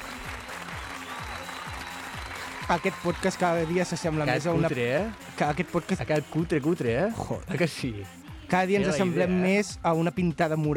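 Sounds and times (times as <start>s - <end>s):
applause: 0.0s - 7.2s
speech: 2.7s - 10.7s.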